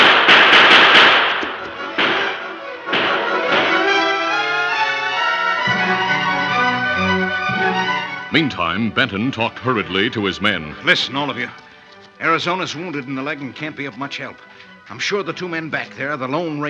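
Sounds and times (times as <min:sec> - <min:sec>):
gunfire exchange between outlaws and rangers: 0:00.0 - 0:05.4
dramatic music: 0:00.0 - 0:15.2
speech: 0:08.4 - 0:16.6.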